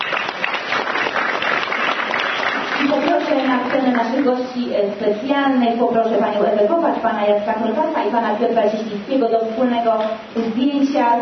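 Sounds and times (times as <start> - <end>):
audience applause at a county council election event in Lidzbark Warmiński: 0.0 - 4.0
speech: 3.4 - 11.2.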